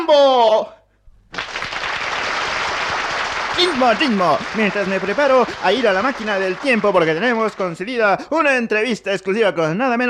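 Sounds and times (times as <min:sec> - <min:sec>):
speech: 0:00.1 - 0:00.8, 0:03.6 - 0:10.0
applause: 0:01.2 - 0:08.2.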